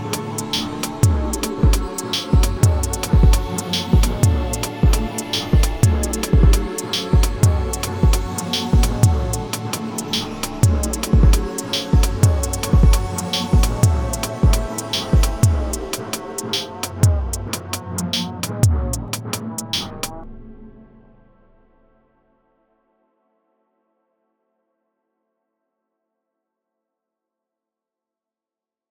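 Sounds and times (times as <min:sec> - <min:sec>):
techno music: 0:00.0 - 0:20.1.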